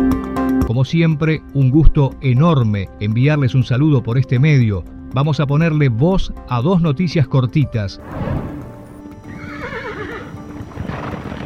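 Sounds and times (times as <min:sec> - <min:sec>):
speech: 0:00.8 - 0:08.5
horse neighing: 0:09.2 - 0:11.4
horse hooves clip-clopping: 0:09.3 - 0:11.4.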